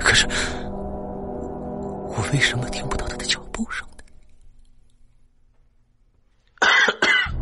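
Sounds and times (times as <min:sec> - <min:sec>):
speech: 0:00.1 - 0:00.5, 0:02.3 - 0:03.9
man coughing: 0:06.6 - 0:07.3.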